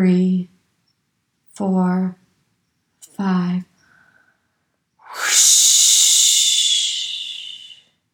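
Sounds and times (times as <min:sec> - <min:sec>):
speech: 0:00.0 - 0:00.5, 0:01.6 - 0:02.2, 0:03.2 - 0:03.7
forceful breath exhalation: 0:05.1 - 0:07.8.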